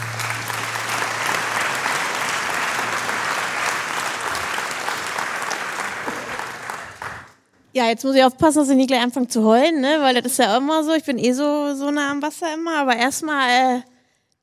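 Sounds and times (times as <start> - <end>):
audience applause at a celebration: 0.0 - 7.4
speech: 7.8 - 14.4.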